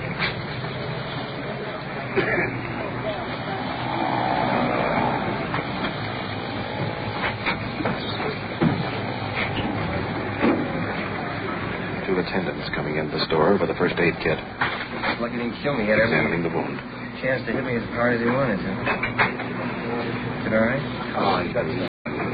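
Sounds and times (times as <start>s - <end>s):
ambulance arriving with engine rumble: 0.0s - 21.2s
speech: 2.2s - 2.5s, 14.0s - 14.6s, 15.2s - 19.5s, 20.1s - 22.3s
clanks and knocks: 6.8s - 11.1s.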